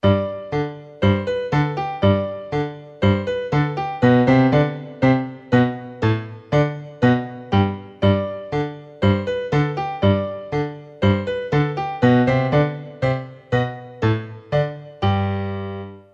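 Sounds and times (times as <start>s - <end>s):
musette music: 0.0s - 16.1s.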